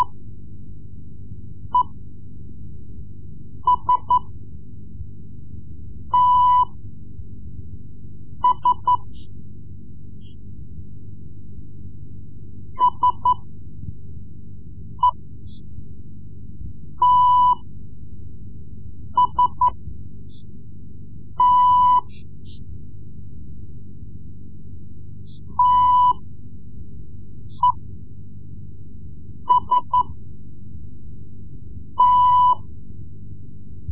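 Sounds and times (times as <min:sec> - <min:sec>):
Morse code lessons: 0:03.6 - 0:04.3, 0:06.1 - 0:06.8, 0:08.4 - 0:09.2, 0:12.8 - 0:13.5, 0:15.0 - 0:15.2, 0:17.0 - 0:17.7, 0:19.2 - 0:19.8, 0:21.4 - 0:22.2, 0:25.4 - 0:26.2, 0:29.5 - 0:30.2, 0:32.0 - 0:32.7.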